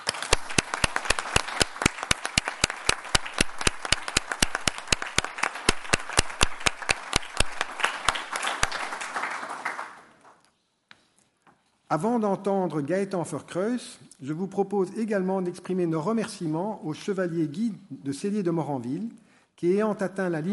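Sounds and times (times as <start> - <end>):
assembly audience applauding: 0.0 - 10.4
speech: 11.9 - 20.5.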